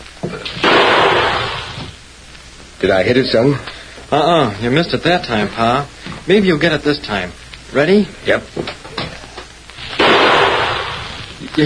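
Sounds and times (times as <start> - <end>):
gunshot fired at a thrown stone: 0.6 - 1.9, 9.8 - 11.3
speech: 2.8 - 8.8.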